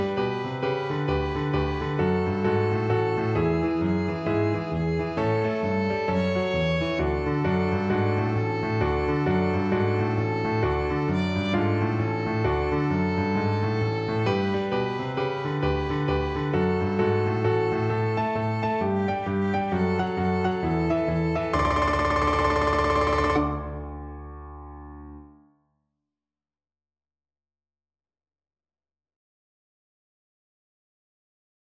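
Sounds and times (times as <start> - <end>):
boogie Christmas music: 0.0 - 24.7.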